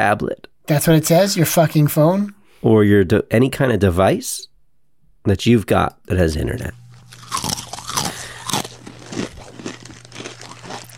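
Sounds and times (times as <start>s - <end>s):
speech: 0.0s - 4.5s, 5.2s - 6.8s
crunching potato chips from a bag: 6.9s - 10.9s.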